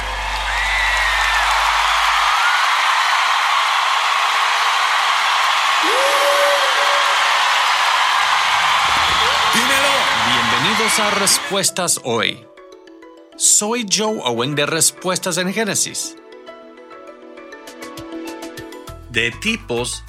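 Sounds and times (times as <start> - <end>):
whistles or whoops: 0.0 - 3.2, 5.8 - 11.6
crowd applause: 0.0 - 11.6
speech: 10.9 - 12.6, 13.4 - 16.2, 19.2 - 20.0.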